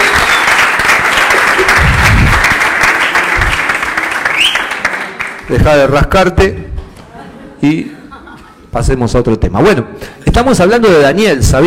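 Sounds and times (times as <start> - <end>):
audience applause: 0.0 - 5.5
speech: 5.5 - 6.7, 7.6 - 8.0, 8.7 - 11.6
laughter: 7.0 - 8.7.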